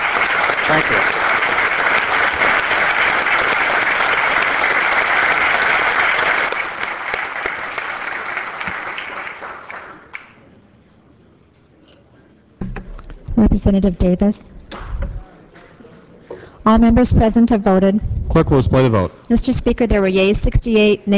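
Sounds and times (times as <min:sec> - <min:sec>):
applause welcoming honorees in a legislative chamber: 0:00.0 - 0:10.5
speech: 0:00.7 - 0:01.2, 0:13.6 - 0:14.6, 0:16.7 - 0:21.1
brief thump: 0:12.6 - 0:13.3.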